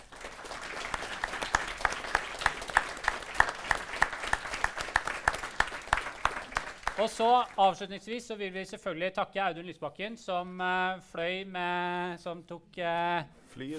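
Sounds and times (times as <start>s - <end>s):
audience applause: 0.0s - 7.6s
speech: 7.0s - 13.7s.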